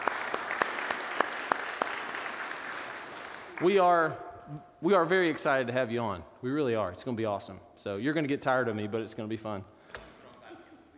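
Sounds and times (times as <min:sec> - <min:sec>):
crowd clapping: 0:00.0 - 0:03.9
speech: 0:03.6 - 0:09.7.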